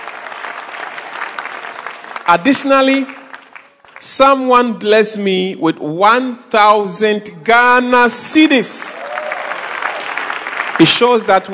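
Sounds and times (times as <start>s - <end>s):
audience clapping: 0.0s - 4.5s, 8.8s - 11.5s
speech: 2.3s - 3.2s, 4.0s - 9.0s, 10.8s - 11.5s.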